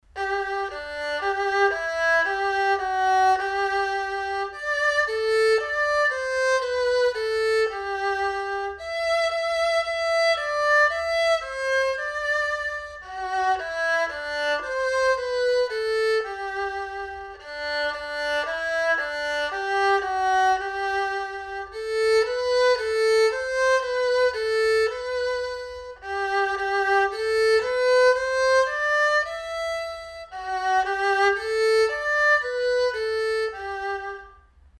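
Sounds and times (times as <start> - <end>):
erhu: 0.0 - 34.7.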